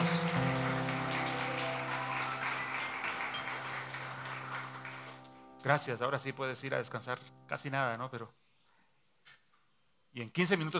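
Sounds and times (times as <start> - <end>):
crowd applause: 0.0 - 5.3
speech: 5.6 - 8.4, 10.1 - 10.7.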